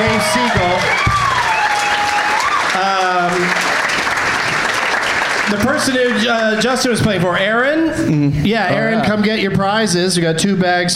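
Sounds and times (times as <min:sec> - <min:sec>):
whoops and voices: 0:00.0 - 0:02.9
audience applause: 0:00.0 - 0:07.0
speech: 0:05.8 - 0:10.9.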